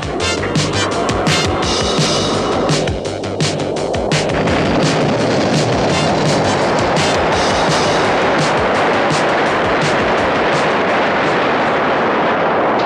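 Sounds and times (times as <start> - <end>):
spaceship engines coming in to land: 0.0 - 12.8.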